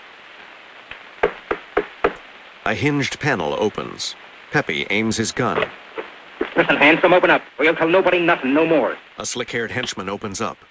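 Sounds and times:
wooden knocks on a shop door: 0:01.2 - 0:02.2
speech: 0:02.6 - 0:05.8, 0:06.6 - 0:10.6.

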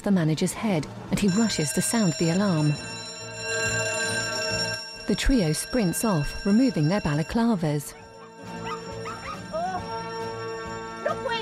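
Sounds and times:
speech: 0:00.0 - 0:03.0, 0:05.1 - 0:08.0
steady street background: 0:00.0 - 0:11.3
Yorkshire Terriers yapping and whimpering: 0:08.2 - 0:09.6.

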